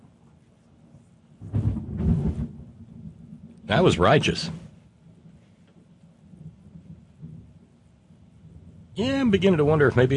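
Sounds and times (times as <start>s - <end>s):
thunder: 1.4s - 5.5s, 6.2s - 9.0s
speech: 3.7s - 4.6s, 9.0s - 10.1s.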